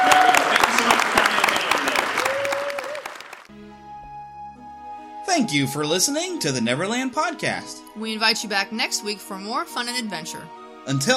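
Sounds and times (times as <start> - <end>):
audience applause: 0.0 - 3.5
speech: 5.4 - 11.1.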